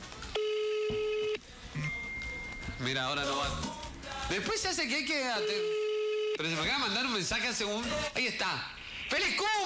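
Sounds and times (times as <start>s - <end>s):
telephone tone while placing a call: 0.4s - 2.8s, 5.4s - 6.4s
speech: 2.9s - 3.7s, 4.3s - 5.8s, 6.4s - 9.6s.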